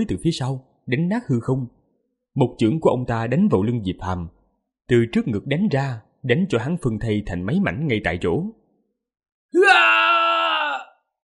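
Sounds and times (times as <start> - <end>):
speech: 0.0 - 1.8, 2.4 - 8.6, 9.5 - 10.1
man screaming: 9.5 - 11.0.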